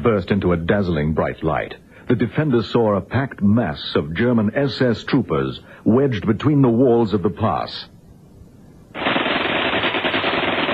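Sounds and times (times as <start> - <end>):
speech: 0.0 - 7.9
rifle fire: 9.0 - 10.7.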